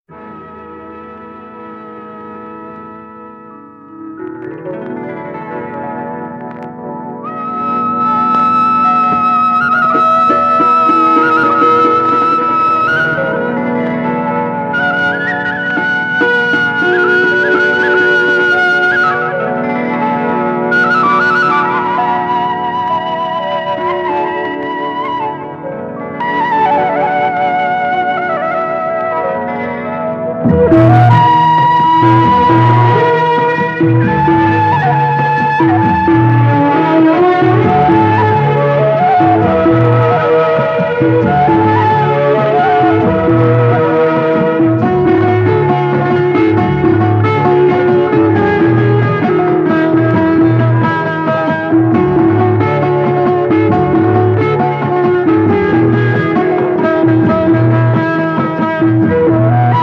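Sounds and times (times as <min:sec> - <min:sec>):
instrumental title music: 0:00.1 - 0:59.8.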